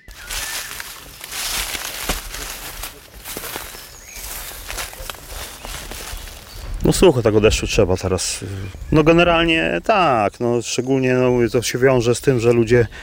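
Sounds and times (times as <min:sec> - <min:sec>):
faint bird calls: 0:00.0 - 0:06.8
footsteps crunching on dry forest litter of twigs and leaves: 0:00.0 - 0:07.0
speech: 0:06.8 - 0:13.0.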